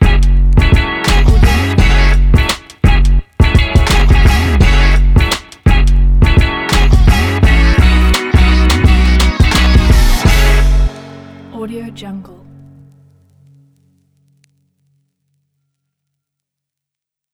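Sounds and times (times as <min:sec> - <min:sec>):
hip hop music: 0:00.0 - 0:12.7.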